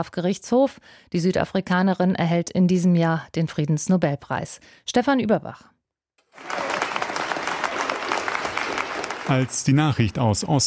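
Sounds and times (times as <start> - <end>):
speech: 0.0 - 5.7, 9.3 - 10.6
spontaneous applause in a hall: 6.2 - 10.6.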